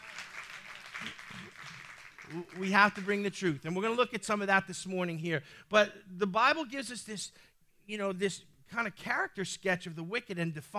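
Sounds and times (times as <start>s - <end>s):
audience clapping: 0.0s - 3.6s
speech: 2.3s - 10.7s.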